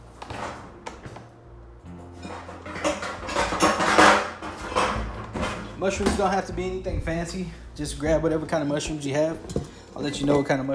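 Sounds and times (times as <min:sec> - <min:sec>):
metal pots and pans clattering while rummaging for a cooking pan: 0:02.2 - 0:06.5, 0:08.8 - 0:10.6
speech: 0:05.8 - 0:10.7.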